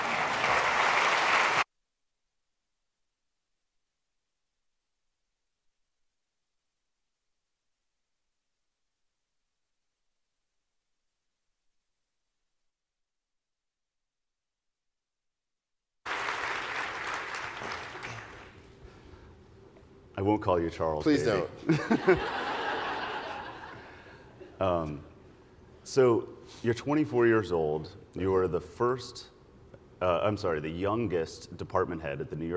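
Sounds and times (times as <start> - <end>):
audience applause: 0.0 - 1.6, 16.1 - 18.6
speech: 20.2 - 22.4, 24.6 - 25.1, 25.9 - 29.3, 30.0 - 32.5
laughter: 21.4 - 24.6.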